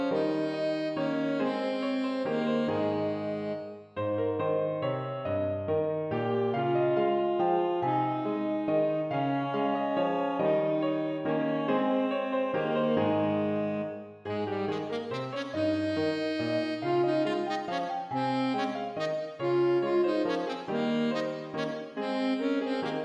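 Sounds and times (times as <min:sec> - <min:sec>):
alto saxophone playing a minuet: 0:00.0 - 0:04.0, 0:06.1 - 0:23.0
piano playing a minuet: 0:00.0 - 0:23.0.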